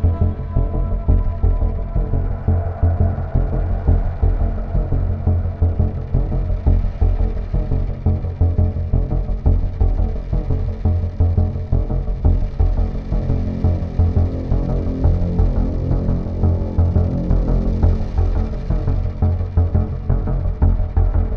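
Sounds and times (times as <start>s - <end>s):
synth bass thunder: 0.1s - 21.2s.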